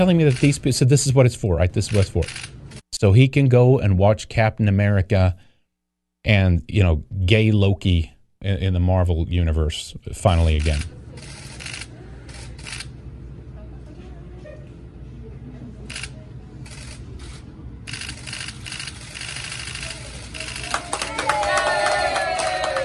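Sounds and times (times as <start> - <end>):
speech: 0.0 - 5.5, 6.2 - 11.0
audience applauding: 20.5 - 22.8.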